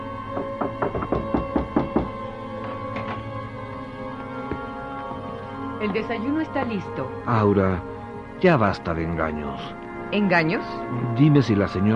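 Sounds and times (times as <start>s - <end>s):
knocking on a door: 0.3s - 2.2s
speech: 5.8s - 11.9s.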